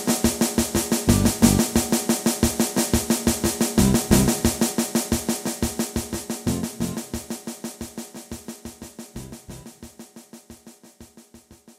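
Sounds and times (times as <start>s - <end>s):
instrumental band music without lead guitar: 0.4s - 7.6s, 9.0s - 9.9s.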